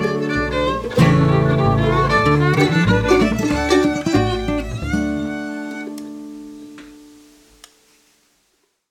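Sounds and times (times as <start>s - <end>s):
guitar pick on strings: 0.0s - 6.2s.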